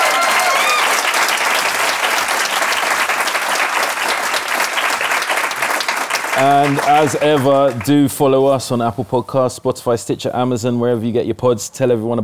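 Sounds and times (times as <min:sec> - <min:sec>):
faint vocal cheers: 0:00.0 - 0:01.2
audience applause: 0:00.0 - 0:08.1
speech: 0:06.4 - 0:12.2.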